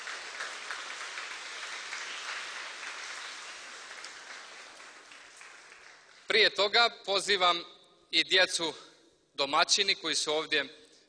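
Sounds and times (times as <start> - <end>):
audience applause welcoming a choir onto the stage: 0.0 - 6.3
speech: 6.4 - 10.8.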